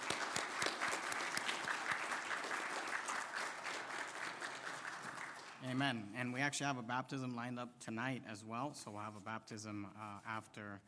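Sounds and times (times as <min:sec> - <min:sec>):
audience applause: 0:00.0 - 0:05.6
speech: 0:05.6 - 0:10.8.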